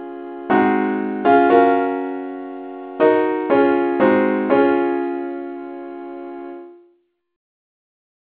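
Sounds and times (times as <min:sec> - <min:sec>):
simple accordion chord in C sharp: 0:00.0 - 0:06.7.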